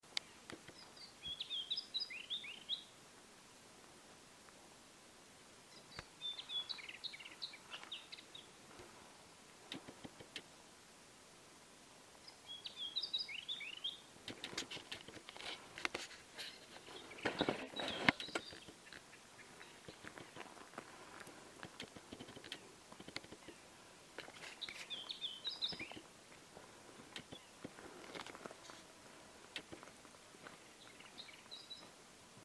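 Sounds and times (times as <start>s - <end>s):
lesser whitethroat in the Gobi desert: 0.2s - 3.0s, 5.7s - 8.6s, 12.2s - 21.0s, 21.7s - 28.9s, 30.5s - 32.0s.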